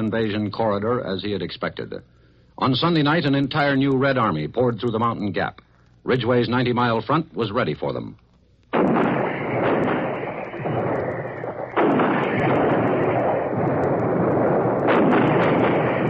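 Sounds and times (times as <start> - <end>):
speech: 0.0 - 8.2
155mm Long Tom heavy artillery fire: 8.7 - 16.0.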